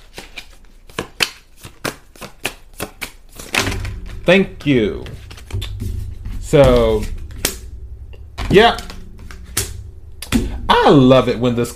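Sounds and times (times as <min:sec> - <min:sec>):
playing cards shuffled and drawn: 0:00.0 - 0:03.7
speech: 0:04.2 - 0:05.6, 0:06.5 - 0:07.2, 0:08.5 - 0:08.9, 0:10.7 - 0:11.7.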